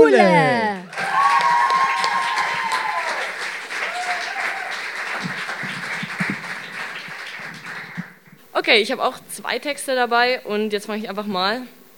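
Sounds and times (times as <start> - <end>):
speech: 0.0 - 0.6, 8.7 - 11.8
audience applause: 0.0 - 8.3.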